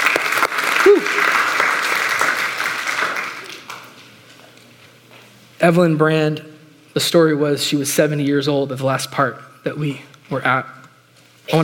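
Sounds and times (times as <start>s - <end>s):
crowd clapping: 0.0s - 4.2s
person whooping: 0.8s - 1.4s
speech: 5.6s - 10.8s, 11.5s - 11.6s.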